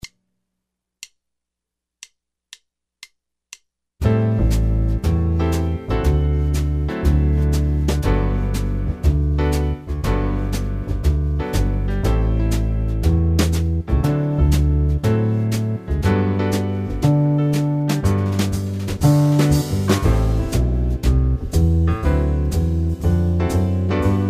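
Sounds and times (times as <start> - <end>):
backing track in G major: 4.0 - 24.2.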